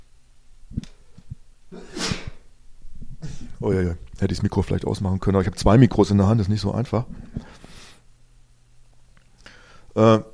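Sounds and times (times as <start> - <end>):
person sneezing: 1.7 - 2.5
speech: 3.6 - 7.5, 10.0 - 10.3.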